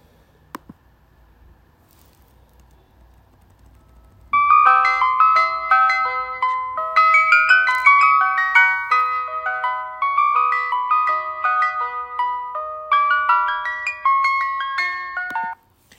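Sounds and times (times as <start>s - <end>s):
ice cream truck jingle: 4.2s - 15.6s.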